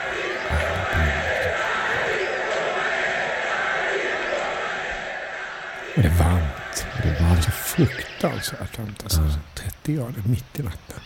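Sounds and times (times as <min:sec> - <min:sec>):
large boxing arena crowd roaring: 0:00.0 - 0:08.0
speech: 0:07.3 - 0:11.0.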